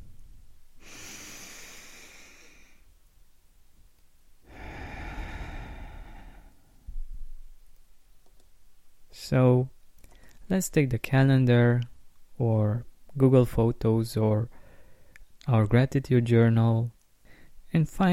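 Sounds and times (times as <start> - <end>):
deep breaths: 0.8 - 2.9, 4.4 - 6.9, 14.5 - 15.3, 17.2 - 17.6
speech: 9.3 - 9.8, 10.5 - 14.6, 15.4 - 17.0, 17.7 - 18.1.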